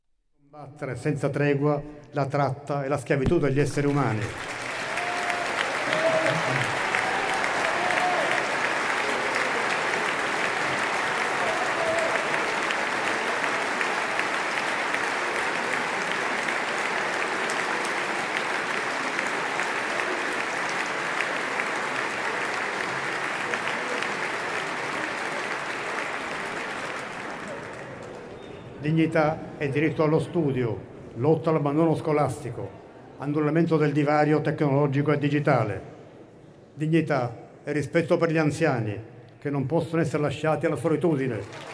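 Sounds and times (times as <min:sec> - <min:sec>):
speech: 0:00.5 - 0:04.6, 0:29.0 - 0:35.9, 0:36.8 - 0:41.7
audience applause: 0:03.5 - 0:28.4, 0:41.3 - 0:41.7.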